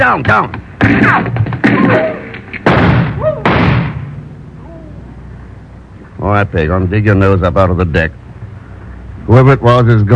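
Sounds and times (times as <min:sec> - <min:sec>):
speech: 0:00.0 - 0:02.2, 0:06.2 - 0:08.2, 0:09.3 - 0:10.1
gunshots: 0:00.8 - 0:04.2.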